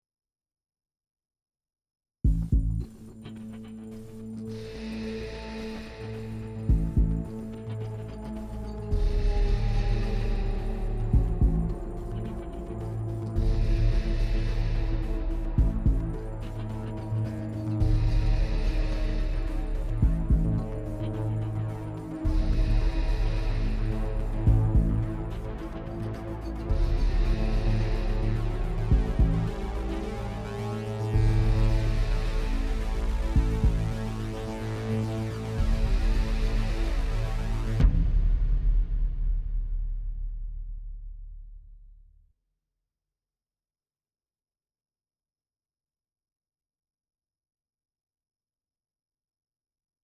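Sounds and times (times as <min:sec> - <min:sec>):
suspense tension thriller crime music: 0:02.3 - 0:41.4.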